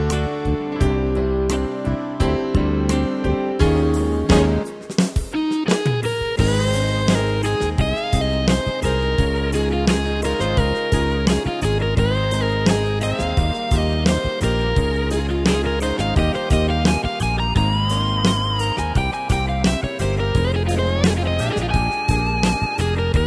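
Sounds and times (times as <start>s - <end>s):
Tyros keyboard style beat: 0.0s - 23.2s.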